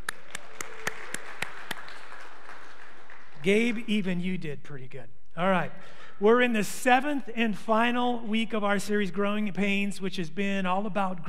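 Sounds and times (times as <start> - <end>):
faint slow claps in a church: 0.0 - 3.5
speech: 3.4 - 11.2.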